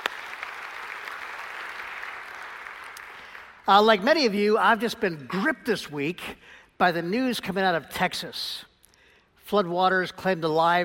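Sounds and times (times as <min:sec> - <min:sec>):
audience applause: 0:00.0 - 0:03.6
speech: 0:03.7 - 0:08.7, 0:09.5 - 0:10.8.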